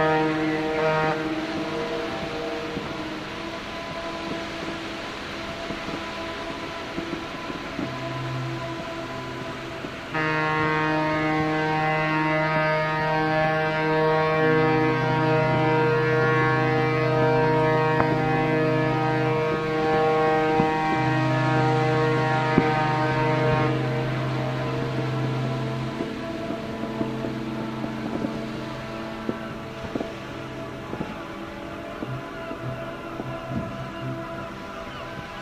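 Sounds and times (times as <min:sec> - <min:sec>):
horns: 0:00.0 - 0:35.3.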